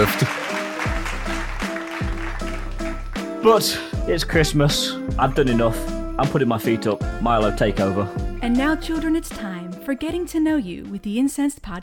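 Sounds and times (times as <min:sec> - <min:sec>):
speech: 0:00.0 - 0:00.4, 0:03.4 - 0:11.8
applause sound effect: 0:00.0 - 0:04.0.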